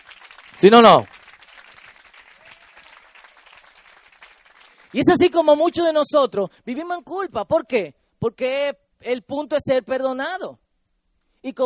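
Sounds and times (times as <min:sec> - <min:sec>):
audience applause: 0:00.0 - 0:05.1
speech: 0:00.6 - 0:01.2, 0:04.9 - 0:10.6, 0:11.4 - 0:11.6.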